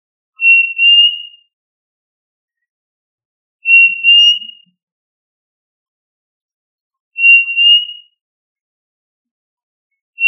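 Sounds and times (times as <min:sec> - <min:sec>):
quail whistle: 0:00.4 - 0:01.6, 0:03.6 - 0:04.8, 0:07.2 - 0:08.2.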